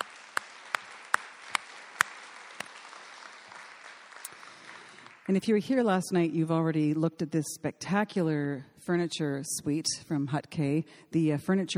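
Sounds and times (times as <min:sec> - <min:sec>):
audience applause: 0:00.0 - 0:05.3
speech: 0:05.3 - 0:11.7.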